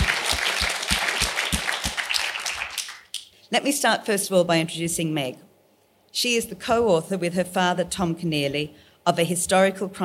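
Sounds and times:
audience applause welcoming two authors at a book talk: 0:00.0 - 0:03.1
speech: 0:03.5 - 0:05.5, 0:06.2 - 0:10.0.

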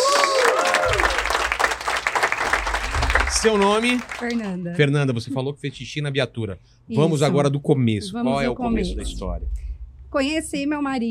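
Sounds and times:
applause: 0:00.0 - 0:04.6
speech: 0:03.4 - 0:11.1.

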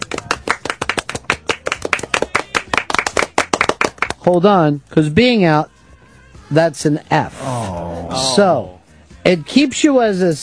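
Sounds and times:
applause from a few people: 0:00.0 - 0:04.3
speech: 0:04.2 - 0:05.7, 0:06.5 - 0:10.4.

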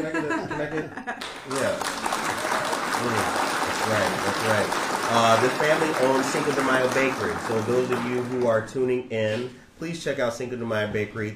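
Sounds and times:
speech: 0:00.0 - 0:02.1, 0:03.0 - 0:11.3
people chatting and laughing: 0:00.0 - 0:08.4
people clapping: 0:01.1 - 0:08.8.

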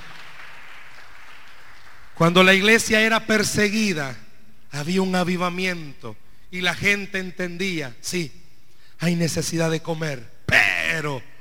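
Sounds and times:
audience applause: 0:00.0 - 0:02.1
speech: 0:02.2 - 0:08.4, 0:09.0 - 0:10.3, 0:11.0 - 0:11.3.

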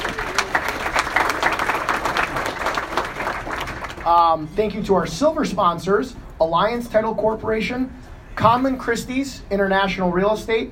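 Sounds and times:
audience clapping: 0:00.0 - 0:04.4
speech: 0:04.1 - 0:10.7.

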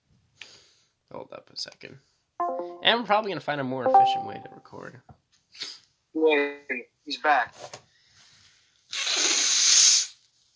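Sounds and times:
speech: 0:01.1 - 0:07.8
person blowing their nose: 0:08.9 - 0:10.3.

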